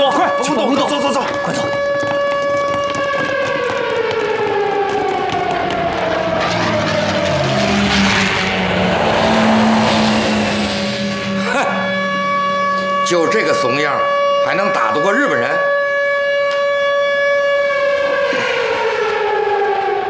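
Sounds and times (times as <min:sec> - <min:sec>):
air raid siren wailing: 0:00.0 - 0:20.0
rumbling commotion: 0:05.4 - 0:12.8.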